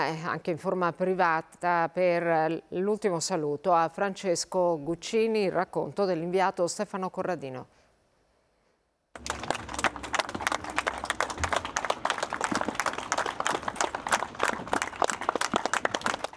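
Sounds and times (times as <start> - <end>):
speech: 0.0 - 7.8
long applause from villagers: 9.2 - 16.3.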